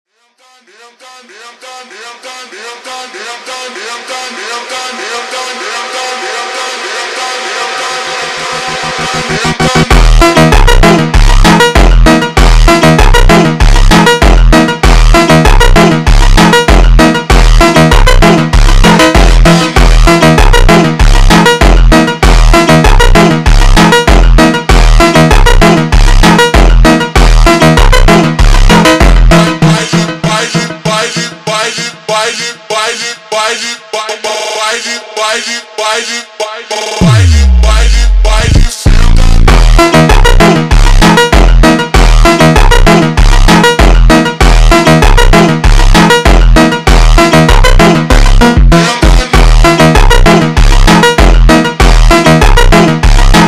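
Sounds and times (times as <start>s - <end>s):
super slowed montagem music: 3.0s - 53.4s.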